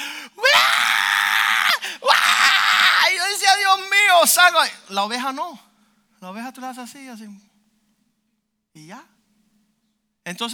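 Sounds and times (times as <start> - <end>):
person imitating squeal of a piglet being slaughtered: 0.4 - 3.3
speech: 4.2 - 7.5, 8.8 - 9.1, 10.3 - 10.5.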